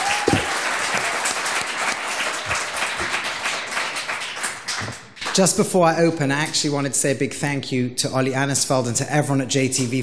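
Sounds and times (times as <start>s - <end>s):
audience applause: 0.0s - 5.4s
speech: 5.4s - 10.0s.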